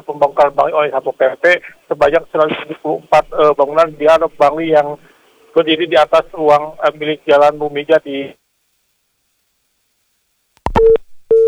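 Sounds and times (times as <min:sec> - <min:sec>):
speech: 0:00.1 - 0:08.4
busy tone after a dropped phone call: 0:10.7 - 0:11.4.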